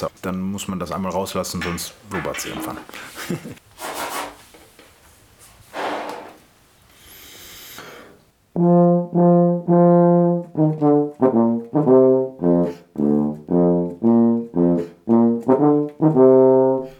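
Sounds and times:
speech: 0.0 - 3.7, 8.6 - 9.9
laughter: 2.9 - 3.6
Berliner Tuba playing a melodic phrase: 8.5 - 16.9.

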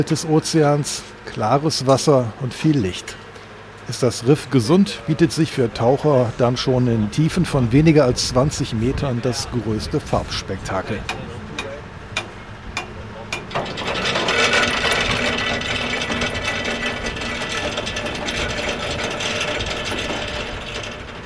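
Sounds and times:
speech: 0.0 - 3.2, 3.9 - 11.3
ship dropping anchor, chain ratcheting: 11.0 - 21.2.

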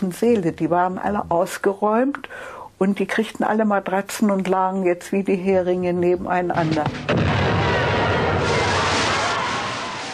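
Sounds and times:
speech: 0.0 - 7.6
torpedo detonation explosion: 7.0 - 10.1.

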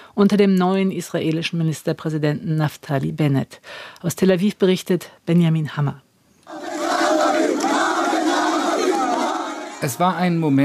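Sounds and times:
speech: 0.2 - 6.6, 9.8 - 10.6
crowd of youths chanting slogans: 6.5 - 9.9.

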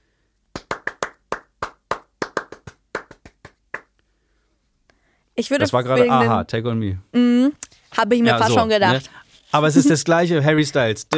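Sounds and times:
single pair of hands clapping a song rhythm: 0.5 - 4.0
speech: 5.4 - 11.1.

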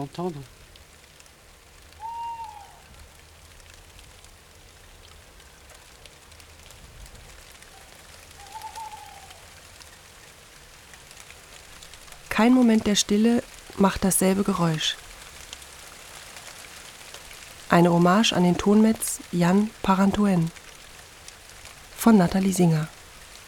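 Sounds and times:
speech: 0.0 - 0.6, 12.4 - 15.0, 17.7 - 20.6, 22.0 - 23.0
rain falling: 0.0 - 23.4
night bird calling in a tree: 1.9 - 3.0, 7.7 - 9.9.

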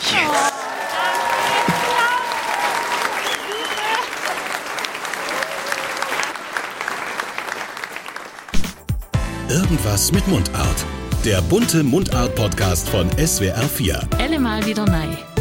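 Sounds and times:
crowd clapping: 0.0 - 9.1
high whistles: 3.1 - 4.1
speech: 9.5 - 15.3.

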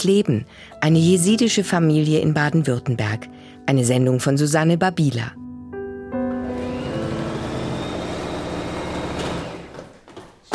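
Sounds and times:
speech: 0.0 - 5.4
electric sewing machine stitching fabric: 6.3 - 10.0.

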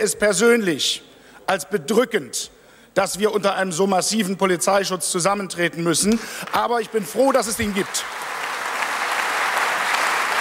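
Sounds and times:
speech: 0.0 - 8.3
parliament applause: 6.4 - 10.3.

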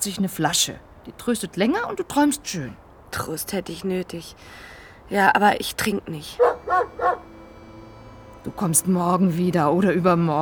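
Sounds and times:
speech: 0.0 - 6.9, 8.4 - 10.4
dog barking: 6.4 - 7.2.

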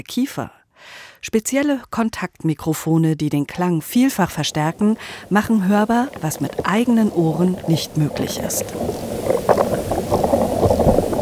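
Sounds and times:
speech: 0.0 - 9.6
gas bubbles crackling inside a tree's water vessels: 3.6 - 11.2.

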